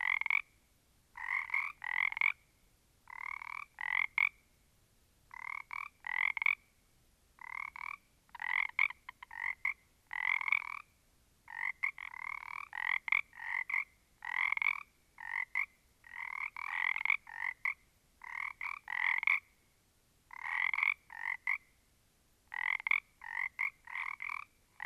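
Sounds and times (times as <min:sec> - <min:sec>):
small group of frogs croaking in chorus: 0:00.0 - 0:00.5, 0:01.2 - 0:02.4, 0:03.1 - 0:04.4, 0:05.3 - 0:06.7, 0:07.4 - 0:10.9, 0:11.5 - 0:19.6, 0:20.3 - 0:21.8, 0:22.5 - 0:24.8.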